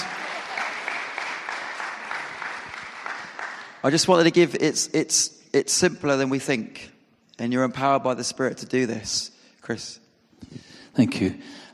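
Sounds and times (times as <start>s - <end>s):
room full of people clapping: 0.0s - 4.3s
speech: 3.8s - 10.0s, 11.0s - 11.7s.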